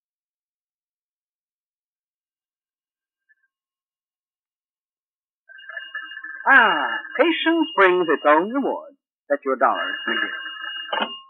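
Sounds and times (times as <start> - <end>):
telephone ringing with electronic trill: 5.5 - 11.2
speech: 6.4 - 11.2.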